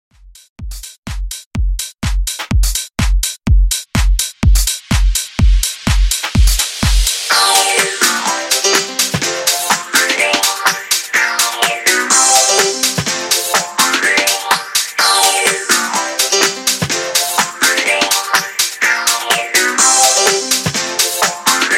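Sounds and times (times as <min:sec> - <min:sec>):
house dance music at 125 BPM: 0:00.6 - 0:21.7.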